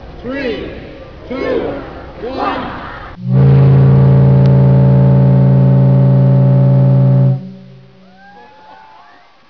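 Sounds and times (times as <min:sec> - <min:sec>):
Titanic ship whistle: 0:03.2 - 0:08.8.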